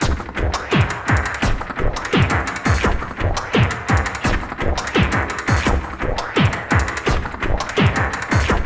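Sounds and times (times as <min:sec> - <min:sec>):
spitting bass drum: 0:00.0 - 0:08.6.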